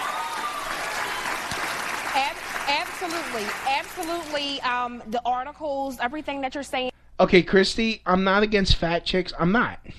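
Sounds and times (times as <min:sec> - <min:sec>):
applause: 0:00.0 - 0:04.6
speech: 0:02.2 - 0:09.9.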